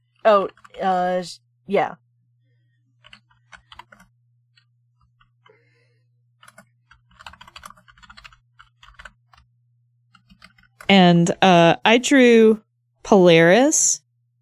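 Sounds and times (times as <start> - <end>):
computer keyboard typing a name into a search: 0.1 - 1.0, 3.0 - 5.6, 6.4 - 9.5, 10.1 - 11.1
speech: 0.2 - 2.0, 10.9 - 14.0.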